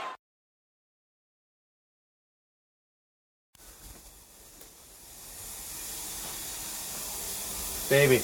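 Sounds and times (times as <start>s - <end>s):
shower water spraying: 3.6s - 8.2s.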